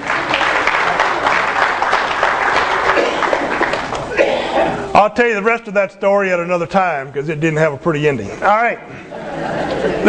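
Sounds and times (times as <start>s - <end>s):
audience applause: 0.0s - 4.2s
speech: 5.0s - 10.0s
laughter: 8.8s - 10.0s.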